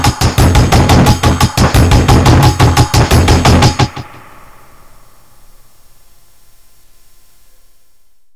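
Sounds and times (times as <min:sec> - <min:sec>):
Casio groove dry then hall reverb and delay: 0:00.0 - 0:05.0.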